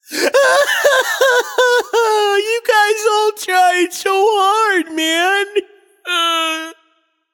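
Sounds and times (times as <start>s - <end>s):
person crying nonverbally: 0.0s - 6.8s
laughter: 0.1s - 2.6s.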